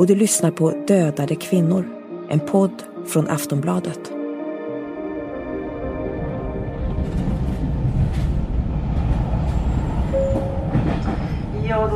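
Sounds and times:
speech: 0.0 - 4.2
high-speed passenger train in motion rumbling: 5.7 - 11.9.

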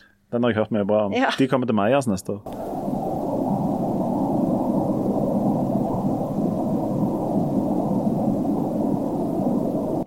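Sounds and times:
speech: 0.3 - 2.6
brown noise recording: 2.5 - 10.0.

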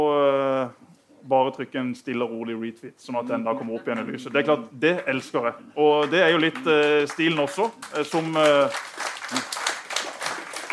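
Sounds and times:
speech: 1.4 - 9.6
audience applause: 6.0 - 10.7.

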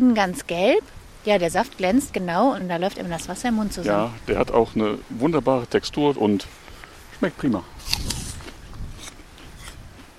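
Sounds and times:
speech: 0.0 - 6.6, 7.2 - 8.1
biting into a crisp apple: 7.8 - 10.1
wet chewing crunches: 7.8 - 10.1.

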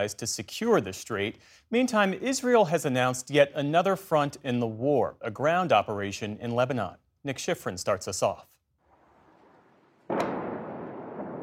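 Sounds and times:
speech: 0.0 - 8.5
Israeli bombardment blast in southern Beirut: 9.0 - 11.4.

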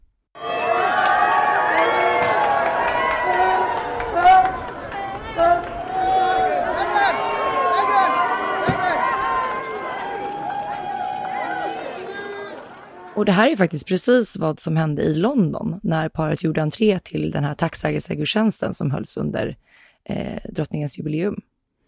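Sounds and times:
crowd cheering at an entrance: 0.4 - 13.4
speech: 13.2 - 21.4.

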